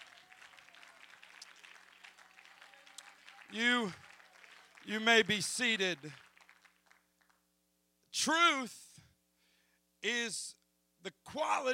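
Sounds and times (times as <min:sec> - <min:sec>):
audience clapping hands: 0:00.0 - 0:07.4
speech: 0:03.5 - 0:04.0, 0:04.8 - 0:06.2, 0:08.2 - 0:08.8, 0:10.0 - 0:11.7.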